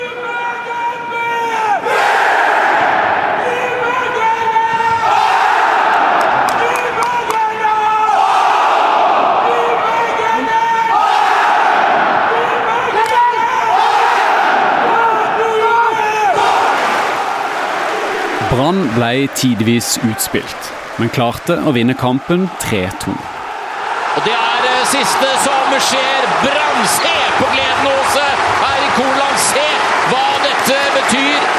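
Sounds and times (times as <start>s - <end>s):
scattered shouts: 0.0s - 31.5s
stadium crowd chanting: 1.7s - 7.2s, 8.0s - 31.5s
scattered claps: 5.9s - 7.6s, 26.3s - 31.5s
speech: 18.7s - 23.3s, 24.2s - 31.5s.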